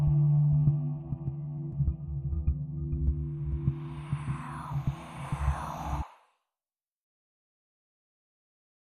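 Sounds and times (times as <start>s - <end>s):
tense abstract music: 0.0s - 6.2s.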